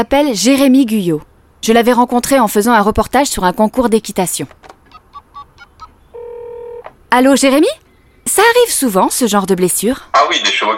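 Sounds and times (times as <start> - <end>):
speech: 0.0 - 4.7, 7.1 - 10.7
steady telephone tone: 4.9 - 6.9
telephone keypad beeps: 4.9 - 6.9.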